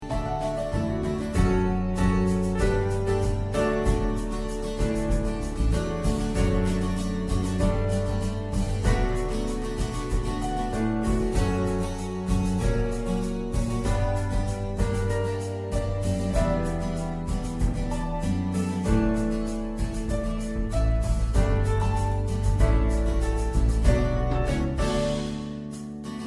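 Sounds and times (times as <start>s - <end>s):
instrumental music: 0.0s - 26.2s.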